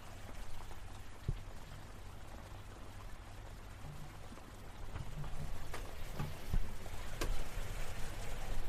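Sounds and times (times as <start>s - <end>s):
light rain pattering softly: 0.0s - 8.6s.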